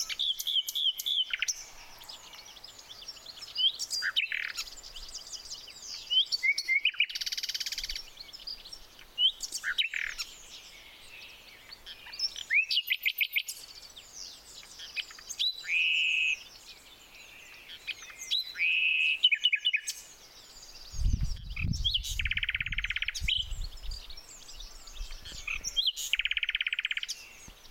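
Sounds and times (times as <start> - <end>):
chorus of other birds twittering: 0.0 - 27.6
common nightingale song: 0.0 - 27.6.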